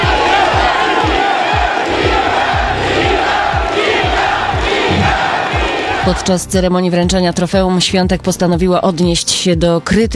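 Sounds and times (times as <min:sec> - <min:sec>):
tennis crowd cheering in the stands: 0:00.0 - 0:06.4
deep rhythmic thumps of drumbeats or stamping: 0:00.0 - 0:10.1
speech: 0:06.0 - 0:10.1.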